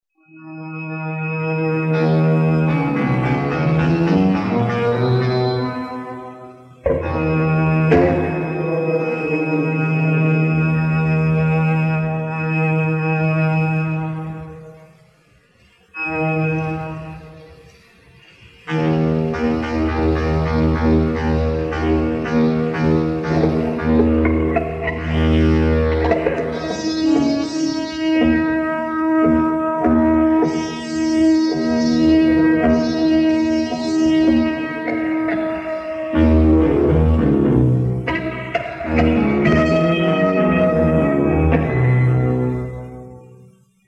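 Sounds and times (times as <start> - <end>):
synthesizer soundcheck: 0.2 - 43.8.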